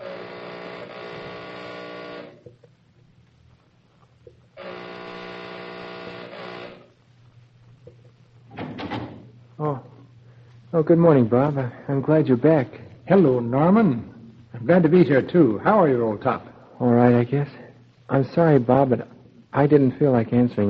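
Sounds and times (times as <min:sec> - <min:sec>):
front door opening: 0:08.5 - 0:09.4
speech: 0:10.8 - 0:20.6.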